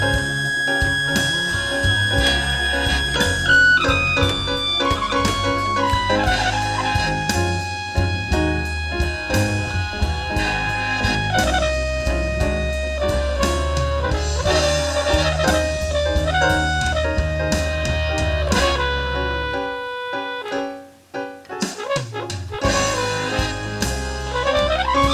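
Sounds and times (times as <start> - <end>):
slow blues trumpet: 0.0 - 25.1.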